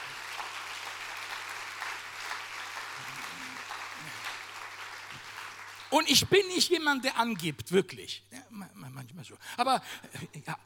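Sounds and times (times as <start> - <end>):
audience applause: 0.0 - 6.6
speech: 5.9 - 10.6.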